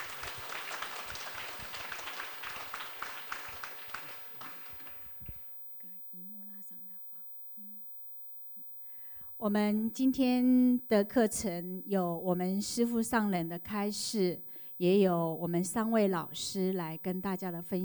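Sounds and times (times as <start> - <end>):
audience applause: 0.0 - 5.4
speech: 9.4 - 17.8.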